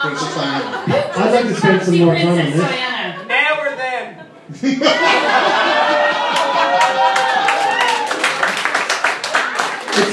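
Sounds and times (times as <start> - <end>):
live audience laughing and cheering: 0.0 - 2.1, 4.2 - 8.7, 9.4 - 10.1
speech: 0.0 - 3.0, 4.5 - 5.8
live audience applauding: 5.6 - 10.1.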